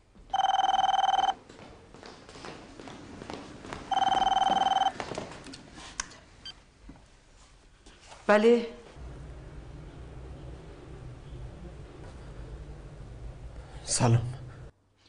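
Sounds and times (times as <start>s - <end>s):
phone ringing with electronic warbling trill: 0.3s - 1.4s, 3.9s - 5.0s
speech: 8.3s - 8.8s, 14.0s - 14.3s.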